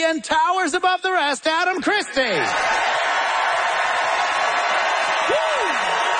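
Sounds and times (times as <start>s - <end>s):
speech: 0.0s - 2.8s
crowd applauding: 2.4s - 6.1s
person whooping: 5.2s - 6.1s.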